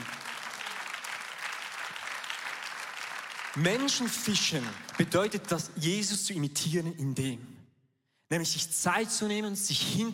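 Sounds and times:
audience applause: 0.0 - 5.5
speech: 3.6 - 7.5, 8.3 - 10.1.

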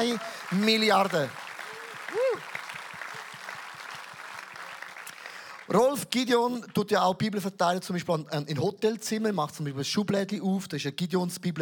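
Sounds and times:
speech: 0.0 - 1.4, 5.7 - 11.6
audience applause: 0.0 - 5.9.

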